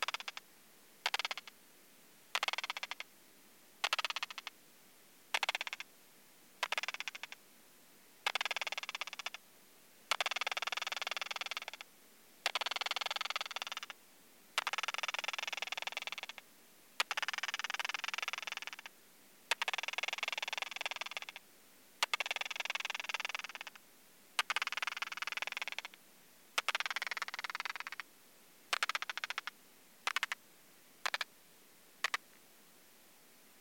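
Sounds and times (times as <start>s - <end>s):
Leptophyes discoidalis calls in lab at 26°C via bat detector at 40 kHz: 0.0s - 0.4s, 1.0s - 1.5s, 2.3s - 3.1s, 3.8s - 4.5s, 5.3s - 5.9s, 6.6s - 7.4s, 8.2s - 9.4s, 10.1s - 11.8s, 12.4s - 14.0s, 14.6s - 16.4s, 17.0s - 18.9s, 19.5s - 21.4s, 22.0s - 23.8s, 24.4s - 26.0s, 26.6s - 28.1s, 28.7s - 30.4s, 31.0s - 31.3s.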